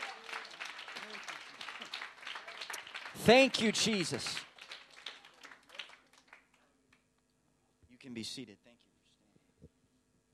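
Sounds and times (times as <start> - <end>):
crowd audience clapping hands: 0.0 - 6.6
speech: 3.2 - 4.4, 8.2 - 8.7.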